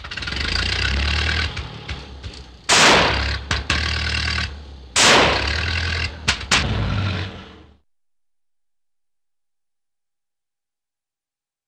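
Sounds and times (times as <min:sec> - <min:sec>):
cartoon old car engine false starts: 0:00.0 - 0:07.8.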